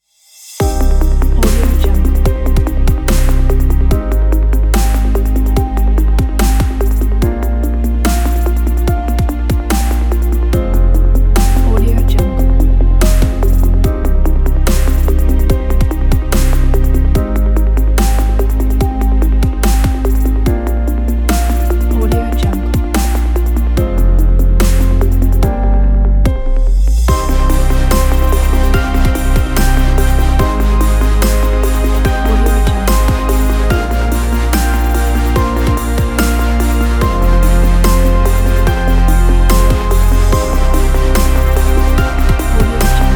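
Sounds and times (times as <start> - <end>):
cinematic dubstep music: 0.6 - 43.1.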